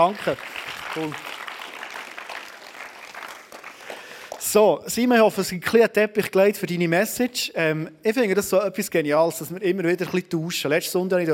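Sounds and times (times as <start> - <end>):
speech: 0.0 - 1.3, 4.5 - 11.3
audience applause: 0.0 - 4.6.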